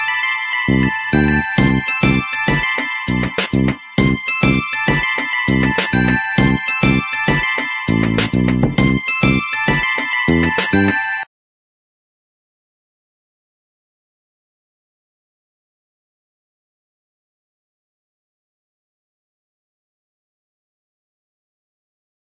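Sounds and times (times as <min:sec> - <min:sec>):
tango ringtone: 0:00.1 - 0:11.2.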